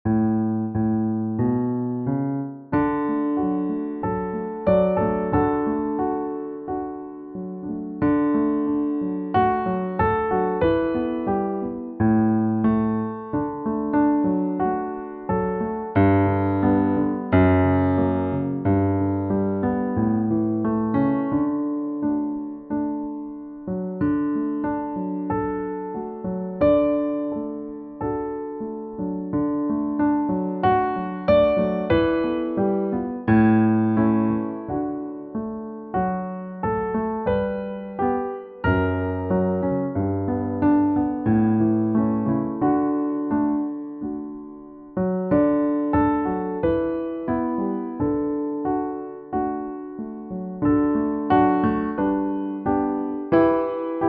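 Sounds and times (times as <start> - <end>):
piano piece: 0.0 - 54.0.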